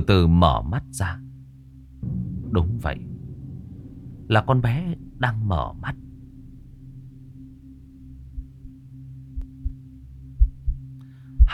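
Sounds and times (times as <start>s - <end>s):
speech: 0.0s - 1.2s, 2.5s - 3.1s, 4.3s - 6.0s
heartbeat thumping: 9.4s - 9.8s, 10.4s - 11.5s.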